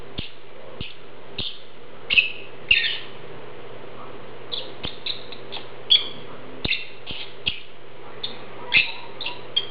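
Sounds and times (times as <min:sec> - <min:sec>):
Agapornis lovebird chirps: 0:00.2 - 0:03.1, 0:04.5 - 0:09.6.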